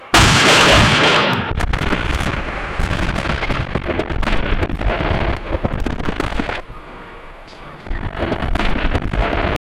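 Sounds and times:
battlefield sounds of war: 0:00.0 - 0:09.6.

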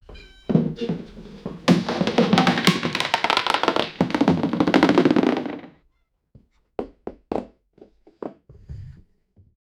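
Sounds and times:
clown family falling down: 0:00.5 - 0:05.7.

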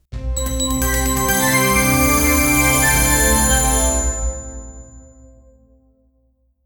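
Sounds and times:
podcast intro jingle: 0:00.3 - 0:05.2.

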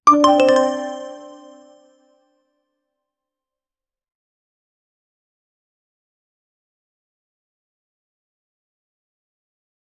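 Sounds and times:
coin purchase sound: 0:00.1 - 0:01.4.

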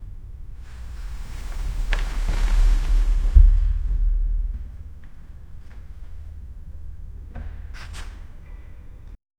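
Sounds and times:
player sliding on the ground: 0:00.6 - 0:05.3.

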